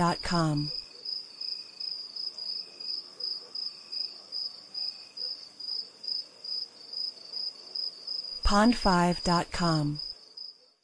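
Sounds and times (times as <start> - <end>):
speech: 0.0 - 0.8, 8.5 - 10.0
crickets trilling: 0.7 - 8.4
dog barking: 3.1 - 4.4.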